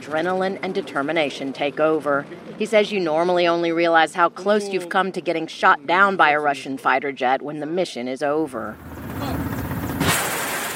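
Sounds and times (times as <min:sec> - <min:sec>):
speech: 0:00.1 - 0:08.9
helicopter engine rumble: 0:08.7 - 0:10.0.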